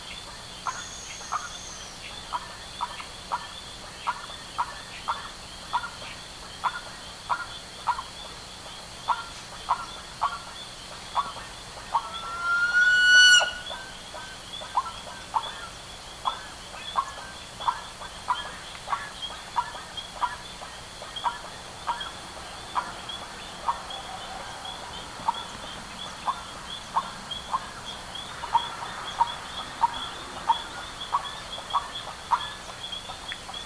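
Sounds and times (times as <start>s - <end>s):
bird calls: 0.0s - 33.6s
long steady whistled tone: 12.4s - 13.9s.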